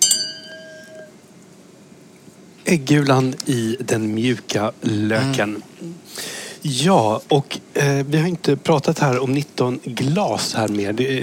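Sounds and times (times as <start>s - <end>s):
glasses clinking in a toast: 0.0s - 1.2s
speech: 2.7s - 11.2s.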